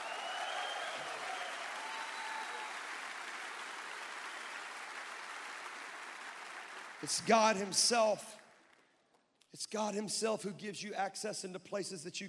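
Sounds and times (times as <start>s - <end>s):
audience clapping hands: 0.0s - 9.3s
speech: 7.0s - 8.4s, 9.5s - 12.2s.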